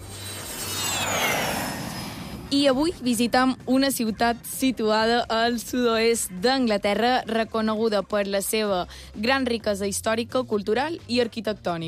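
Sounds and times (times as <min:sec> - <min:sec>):
jet aircraft sound effect: 0:00.0 - 0:06.2
speech: 0:02.5 - 0:11.8.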